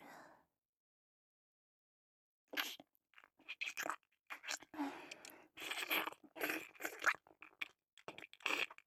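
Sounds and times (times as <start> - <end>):
ASMR ear licking sounds: 2.6 - 8.8.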